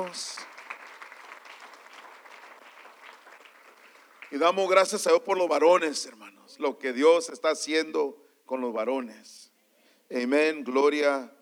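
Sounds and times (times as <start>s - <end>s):
speech: 0.0s - 0.5s, 4.3s - 9.4s, 10.1s - 11.3s
audience applause: 0.0s - 4.9s.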